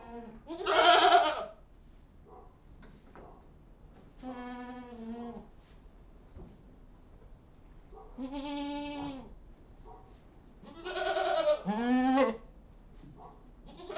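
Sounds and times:
goats bleating inside a goat house: 0:00.0 - 0:01.6, 0:08.2 - 0:09.3, 0:10.6 - 0:12.4, 0:13.7 - 0:13.9.

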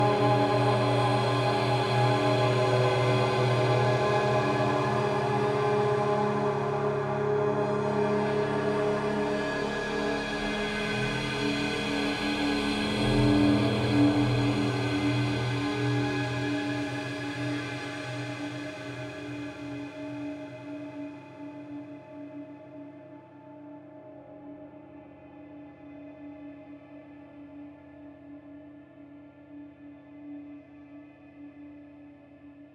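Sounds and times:
evolving guitar drone swell: 0:00.0 - 0:19.1.

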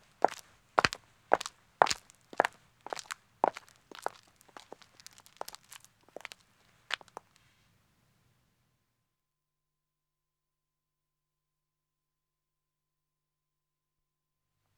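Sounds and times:
two women's footsteps walking on a country road: 0:00.0 - 0:07.4.

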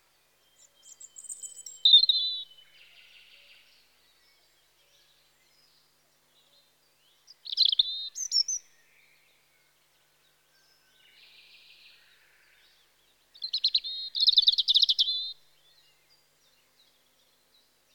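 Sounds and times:
European robin Erithacus rubecula song in spring: 0:00.4 - 0:03.9, 0:07.0 - 0:09.4, 0:13.1 - 0:16.6.

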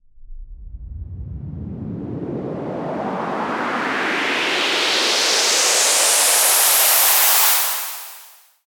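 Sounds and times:
short white noise sweep: 0:00.8 - 0:08.5.

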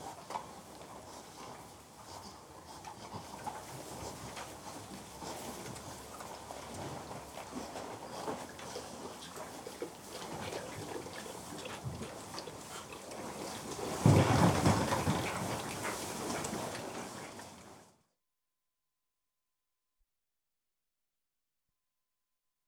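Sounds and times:
group of pigs grunting and snuffling: 0:01.0 - 0:17.0.

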